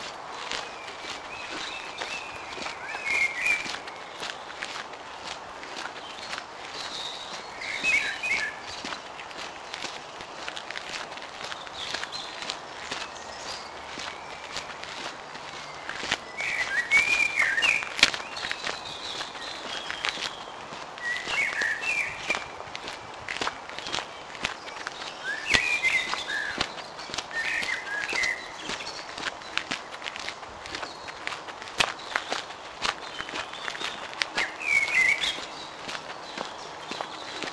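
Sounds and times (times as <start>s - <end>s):
birdsong: 0.0s - 37.5s.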